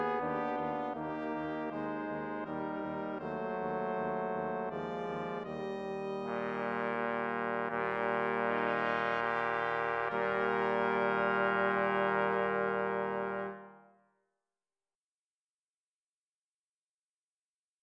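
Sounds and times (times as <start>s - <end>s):
brass quartet playing: 0.0s - 13.8s.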